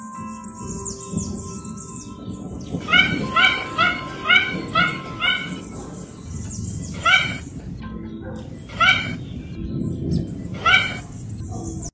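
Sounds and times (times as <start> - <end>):
Mandarin duck yelping calls: 2.8 - 5.8, 7.0 - 7.5, 8.7 - 9.2, 10.6 - 11.1.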